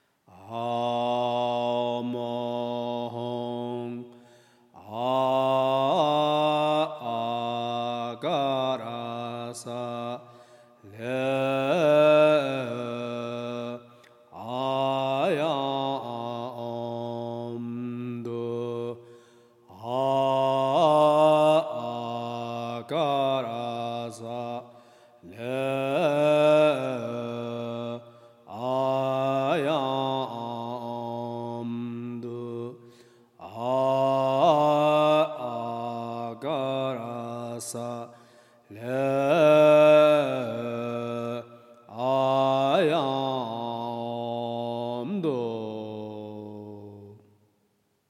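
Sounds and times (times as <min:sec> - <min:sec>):
mantra chanting: 0:00.3 - 0:47.3.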